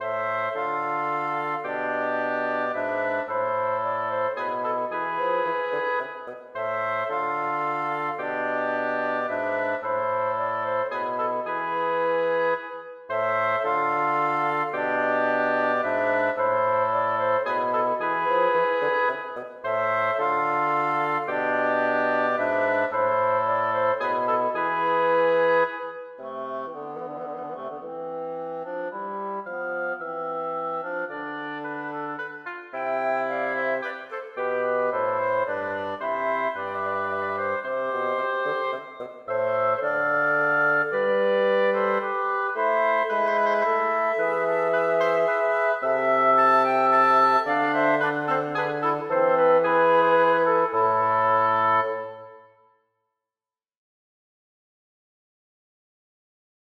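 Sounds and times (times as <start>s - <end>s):
wind quartet playing a minuet without harpsichord: 0.0s - 52.5s.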